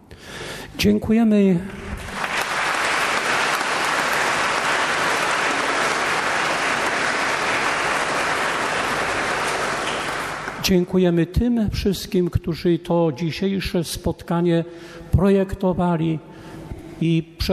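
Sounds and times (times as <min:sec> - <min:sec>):
speech: 0:00.8 - 0:01.8, 0:10.6 - 0:17.5
audience applause: 0:02.0 - 0:10.7.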